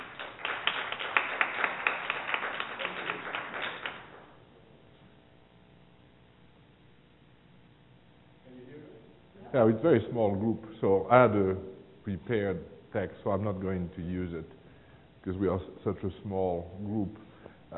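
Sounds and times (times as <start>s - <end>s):
small audience clapping to welcome a professor: 0.0s - 4.3s
speech: 9.6s - 14.6s, 15.2s - 17.2s.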